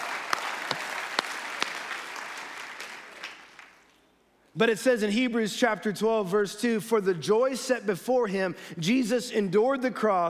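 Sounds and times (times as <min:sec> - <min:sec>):
audience round of applause: 0:00.0 - 0:03.9
speech: 0:04.6 - 0:10.2.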